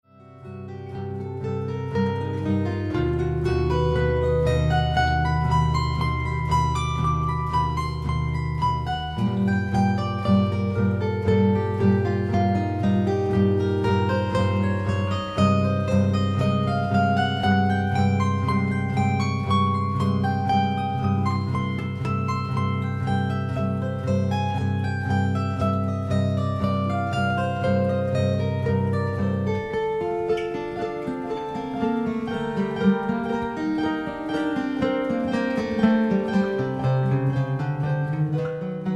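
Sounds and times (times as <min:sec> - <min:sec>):
classical prelude in G minor: 0:00.1 - 0:38.9.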